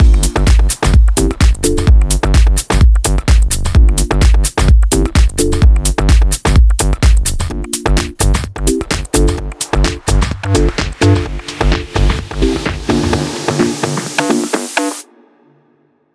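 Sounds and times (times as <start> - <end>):
128 BPM music mix: 0.0 - 15.5.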